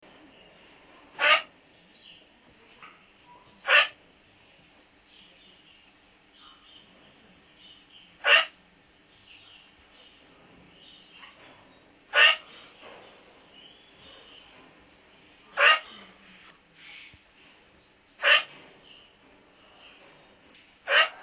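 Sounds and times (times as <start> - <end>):
duck giving rasping calls: 1.2 - 1.5, 8.2 - 8.5, 12.1 - 12.5, 15.6 - 15.9, 18.2 - 18.5.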